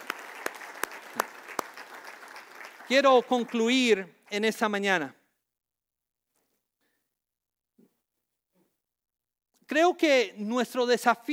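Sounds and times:
audience applause: 0:00.0 - 0:04.0
speech: 0:02.9 - 0:05.2, 0:09.7 - 0:11.3.

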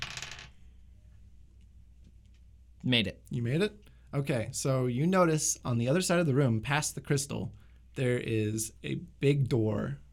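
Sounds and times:
dice clattering across a hard tabletop: 0:00.0 - 0:00.6
low quiet hum: 0:00.0 - 0:10.1
speech: 0:02.8 - 0:10.0.

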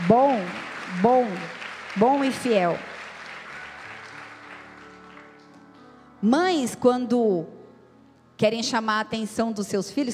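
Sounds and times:
audience applause: 0:00.0 - 0:05.8
speech: 0:00.1 - 0:02.9, 0:06.2 - 0:07.6, 0:08.4 - 0:10.1.

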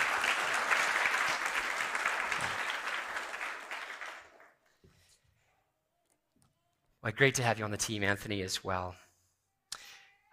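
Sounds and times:
church congregation applauding to welcome a new staff member: 0:00.0 - 0:04.7
speech: 0:07.0 - 0:09.0.

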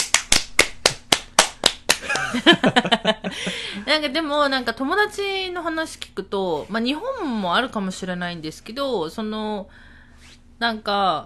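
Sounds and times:
hands clapping: 0:00.0 - 0:02.4
laughter: 0:02.0 - 0:03.9
speech: 0:02.3 - 0:09.9, 0:10.6 - 0:11.2.

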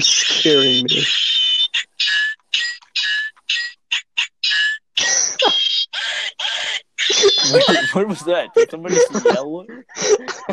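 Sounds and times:
speech: 0:00.0 - 0:01.2, 0:07.5 - 0:10.5
toy Minecraft sword electronic sound effects: 0:00.0 - 0:05.6
laughter: 0:07.1 - 0:10.5.

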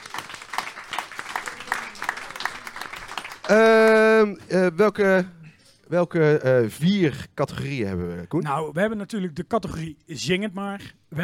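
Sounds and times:
applause: 0:00.0 - 0:04.3
speech: 0:03.5 - 0:11.2.

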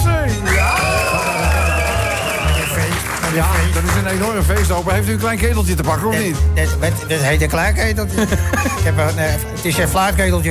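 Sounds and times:
applause: 0:00.4 - 0:05.0
speech: 0:03.4 - 0:10.4
laughter: 0:08.1 - 0:09.2.

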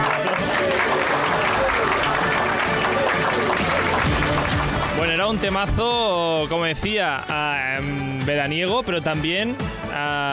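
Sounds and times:
audience applause: 0:00.0 - 0:05.7
speech: 0:05.3 - 0:10.3.

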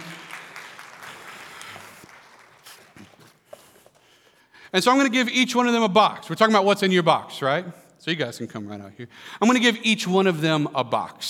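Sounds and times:
audience applauding: 0:00.0 - 0:03.4
speech: 0:04.7 - 0:11.2.

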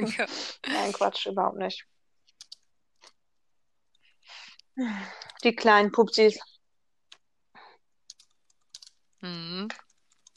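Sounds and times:
speech: 0:00.0 - 0:01.9, 0:04.8 - 0:06.5, 0:09.2 - 0:09.8
typing a message on a device: 0:02.2 - 0:03.2, 0:08.0 - 0:10.3.

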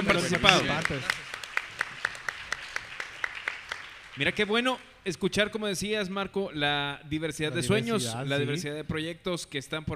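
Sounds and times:
audience applause: 0:00.0 - 0:04.6
speech: 0:00.1 - 0:01.2, 0:04.2 - 0:09.9.

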